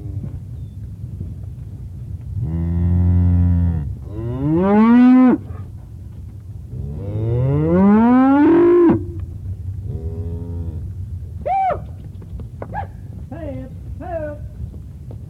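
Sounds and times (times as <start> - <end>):
steady low rumble: 0.0 - 15.2
cow mooing: 2.4 - 5.6, 6.8 - 9.2.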